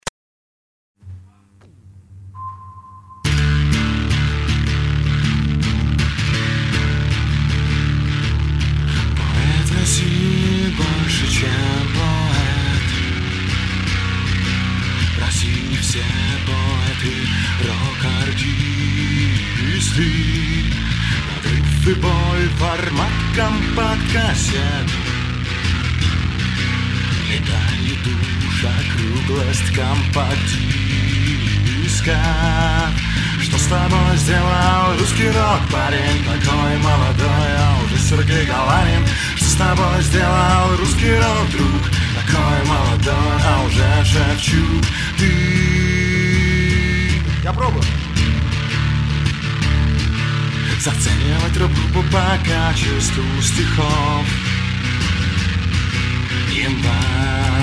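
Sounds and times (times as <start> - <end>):
Russian rock bass guitar: 3.2 - 57.6.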